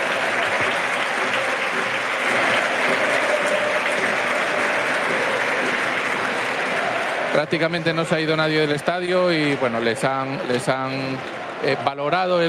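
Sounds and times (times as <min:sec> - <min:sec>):
stadium crowd applauding at the Molinón: 0:00.0 - 0:12.4
speech: 0:07.4 - 0:12.4.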